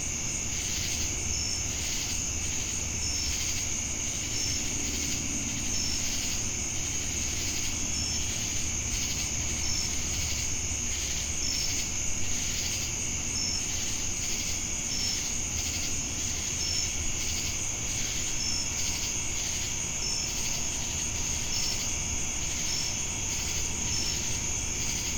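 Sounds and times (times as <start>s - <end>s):
crickets trilling: 0.0s - 25.1s.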